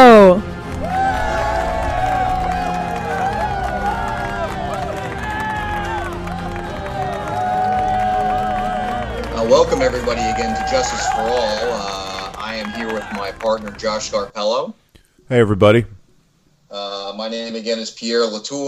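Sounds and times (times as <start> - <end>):
audience crowd roar for a show host: 0.6 - 14.2
audience clapping for the host: 0.6 - 14.3
audience whooping voices: 0.8 - 14.2
speech: 9.5 - 12.0, 12.6 - 15.9, 17.2 - 18.6.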